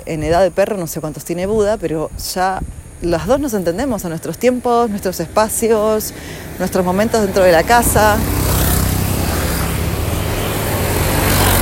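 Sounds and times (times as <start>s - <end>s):
speech: 0.0s - 8.5s
many motorcycles passing together: 2.6s - 11.6s.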